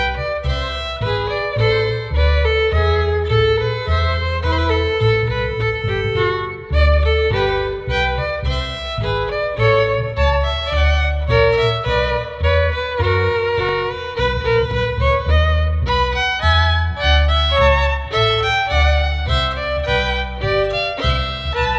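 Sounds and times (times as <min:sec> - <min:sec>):
bass: 0:00.0 - 0:21.7
fiddles playing a bourree: 0:00.0 - 0:21.7.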